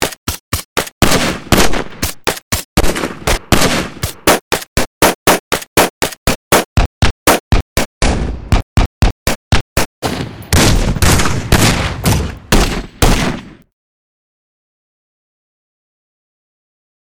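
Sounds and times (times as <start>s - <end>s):
weapon sounds: 0.8s - 13.6s.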